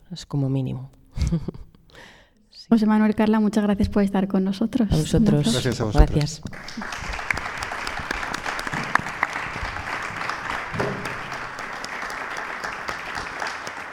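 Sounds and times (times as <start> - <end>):
speech: 0.1 - 7.1
audience applause: 5.6 - 13.9.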